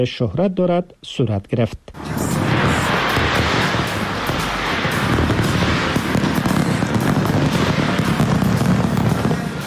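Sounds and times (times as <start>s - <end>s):
speech: 0.0s - 2.3s
New Year fireworks exploding: 2.0s - 9.6s.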